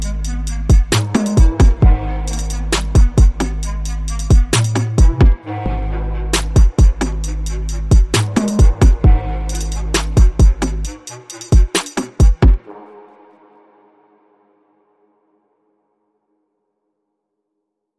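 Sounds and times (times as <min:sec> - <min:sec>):
bass roll remix: 0:00.0 - 0:10.9.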